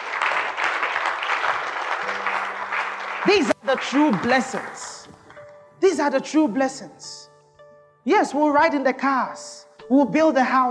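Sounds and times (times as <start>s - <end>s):
audience clapping: 0.0s - 5.5s
speech: 3.2s - 5.0s, 5.8s - 7.2s, 8.0s - 10.6s.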